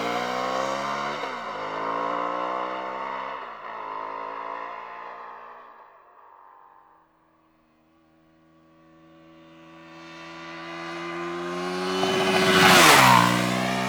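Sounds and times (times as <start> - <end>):
Aprilia RSV Mille motorcycle engine: 0.0 - 6.7, 7.8 - 13.8.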